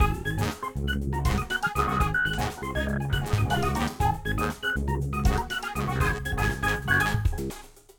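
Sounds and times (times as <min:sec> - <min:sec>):
music loop: 0:00.0 - 0:07.5.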